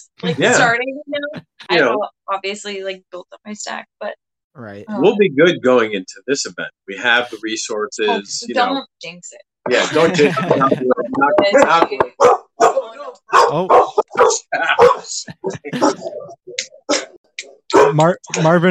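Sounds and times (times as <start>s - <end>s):
laughter: 0.2s - 2.0s, 4.6s - 8.8s, 9.7s - 12.1s, 12.8s - 16.4s
speech: 0.2s - 12.4s, 13.3s - 18.6s
guard dogs barking: 12.1s - 17.1s, 17.7s - 18.1s.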